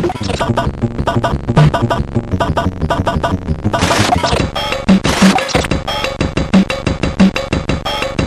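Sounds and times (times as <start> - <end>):
DSI keyboard playing: 0.2 - 8.1.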